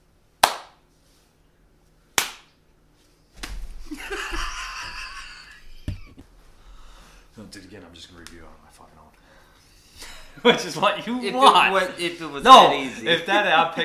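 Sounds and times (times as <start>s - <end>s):
hand clapping: 0.4s - 0.8s, 2.2s - 2.6s
laughter: 3.9s - 6.2s, 10.0s - 13.8s
speech: 7.6s - 9.2s, 10.4s - 13.8s.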